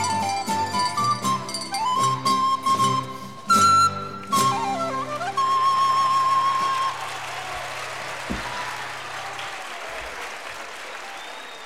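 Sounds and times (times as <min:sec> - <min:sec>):
jota instrumental with whistle: 0:00.0 - 0:08.8.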